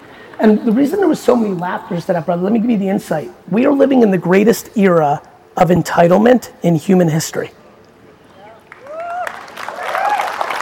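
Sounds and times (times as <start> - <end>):
speech: 0.4 - 7.6
audience clapping: 8.6 - 10.6.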